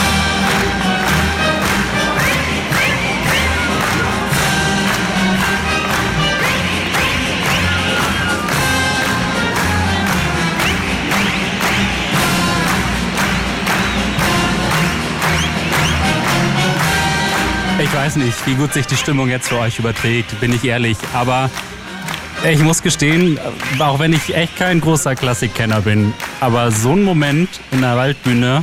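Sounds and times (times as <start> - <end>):
cheering: 0.0 - 28.6
large audience clapping along in a steady beat: 0.0 - 28.6
shrill whistles: 1.0 - 4.4, 5.9 - 9.0, 10.5 - 12.4, 13.2 - 14.6, 15.2 - 16.4
speech: 18.0 - 21.8, 22.4 - 28.6.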